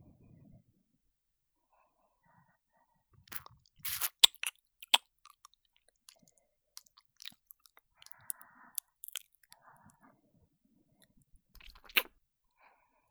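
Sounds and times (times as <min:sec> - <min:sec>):
ASMR kissing sounds: 0:03.3 - 0:05.0.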